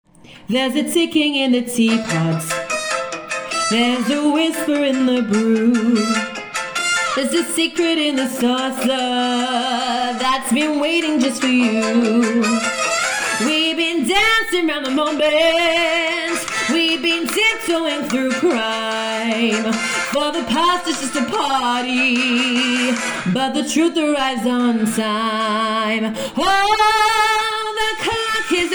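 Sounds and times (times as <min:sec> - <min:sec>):
vocals: 0:00.1 - 0:28.7.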